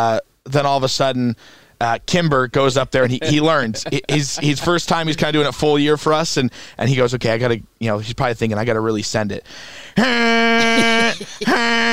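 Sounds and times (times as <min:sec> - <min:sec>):
speech: 0:00.0 - 0:11.9
laughter: 0:03.0 - 0:05.2, 0:10.0 - 0:11.9
voice imitating big horn honks: 0:10.0 - 0:11.9.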